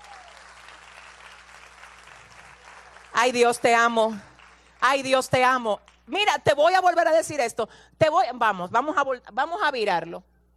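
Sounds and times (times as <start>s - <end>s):
audience applause: 0.0s - 3.4s
speech: 3.2s - 10.3s.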